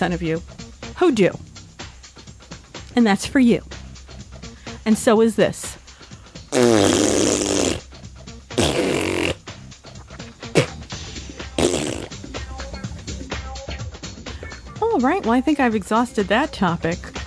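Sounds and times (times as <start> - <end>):
speech: 0.0 - 1.5, 3.0 - 3.8, 4.8 - 5.8, 15.2 - 17.2
mouth spitting noises: 6.5 - 7.9, 8.5 - 10.9, 11.5 - 12.2.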